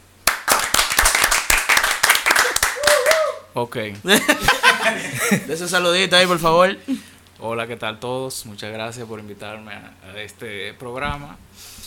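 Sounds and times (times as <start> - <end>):
applause: 0.2 - 3.4
speech: 3.6 - 11.8
laughter: 4.1 - 5.5.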